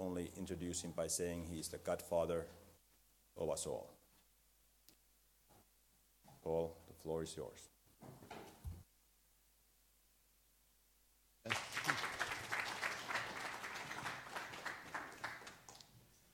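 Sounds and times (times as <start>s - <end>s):
speech: 0.0s - 2.6s, 3.4s - 4.0s, 6.4s - 8.3s
audience clapping: 11.4s - 16.0s.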